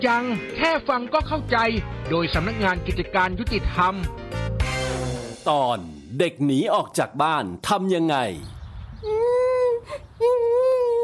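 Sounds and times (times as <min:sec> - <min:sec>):
speech: 0:00.0 - 0:04.2, 0:05.4 - 0:09.1
child crying: 0:09.0 - 0:11.0.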